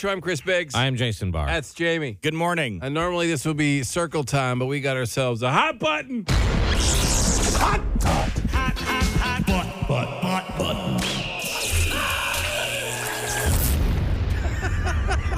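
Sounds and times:
speech: 0:00.0 - 0:11.2
eagle screaming in sound effect: 0:11.4 - 0:13.7
laughter: 0:14.2 - 0:15.3.

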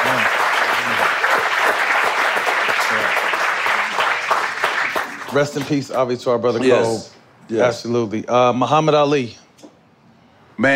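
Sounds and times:
applause: 0:00.0 - 0:06.0
speech: 0:05.3 - 0:09.4, 0:10.6 - 0:10.7.

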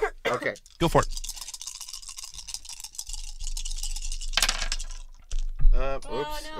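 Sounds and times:
speech: 0:00.3 - 0:01.2
dice rolled for an attack in a tabletop role-playing game: 0:00.5 - 0:05.6.

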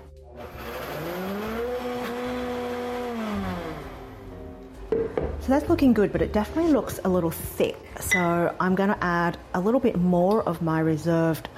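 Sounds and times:
blender blitzing tahini sauce: 0:00.4 - 0:04.3
speech: 0:05.5 - 0:11.5.

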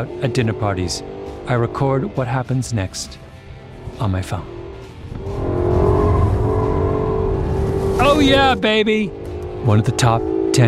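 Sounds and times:
speech: 0:00.0 - 0:03.2, 0:03.9 - 0:04.6, 0:08.0 - 0:10.6
car engine revving while drifting: 0:00.0 - 0:10.6.

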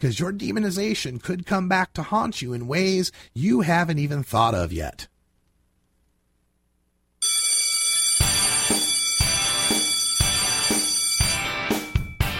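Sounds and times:
speech: 0:00.0 - 0:05.1
bell ringing: 0:07.2 - 0:12.3.

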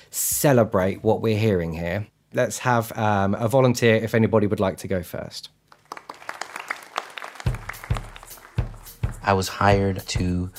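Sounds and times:
speech: 0:00.4 - 0:05.6, 0:09.3 - 0:10.5
audience applause: 0:05.7 - 0:09.3.

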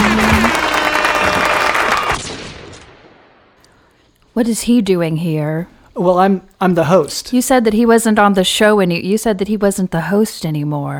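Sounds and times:
audience applause welcoming a guest on a show: 0:00.0 - 0:02.2
speech: 0:04.4 - 0:10.9.

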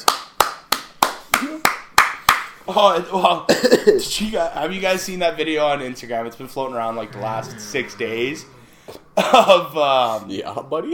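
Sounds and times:
thigh clap: 0:00.0 - 0:02.7
speech: 0:02.7 - 0:10.9.

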